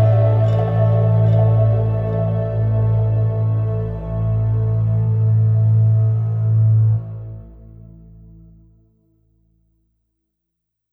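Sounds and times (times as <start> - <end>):
romantic mystic theme music: 0.0 - 8.4.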